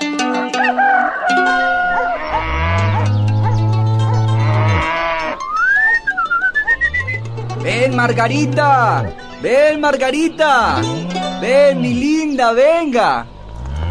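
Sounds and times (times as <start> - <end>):
rooster crowing on a farm: 0.5 - 8.3
farm animals bleating: 1.3 - 5.6, 6.6 - 13.8
cows mooing on a farm: 1.3 - 9.3, 10.2 - 13.8
speech: 8.0 - 13.4.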